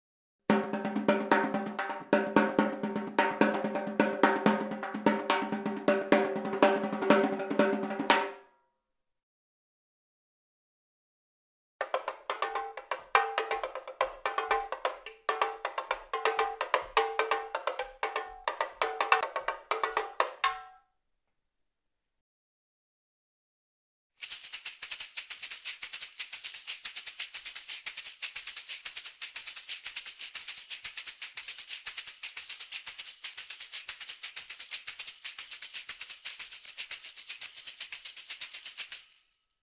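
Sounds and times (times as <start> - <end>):
samba instruments playing: 0.5 - 8.3, 12.2 - 20.5.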